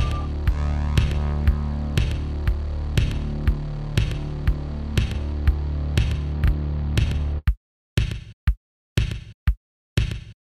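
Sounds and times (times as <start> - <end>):
drm1 synched drum sequencer: 0.0 - 8.4.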